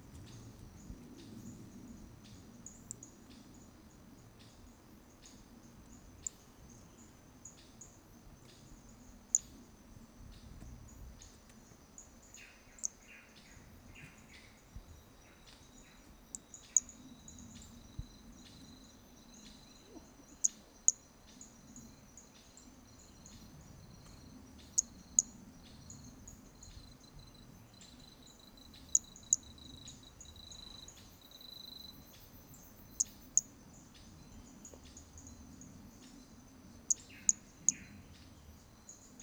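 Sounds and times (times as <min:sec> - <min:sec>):
insects buzzing: 0:00.0 - 0:39.2
Hermogenes's toadlet calling with sharp high clicks: 0:28.8 - 0:29.4, 0:36.9 - 0:37.9.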